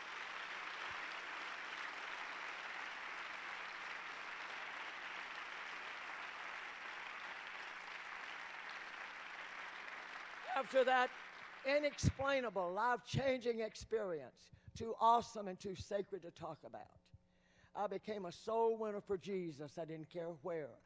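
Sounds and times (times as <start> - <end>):
audience applauding: 0.0 - 12.2
speech: 10.6 - 17.2, 17.8 - 20.8.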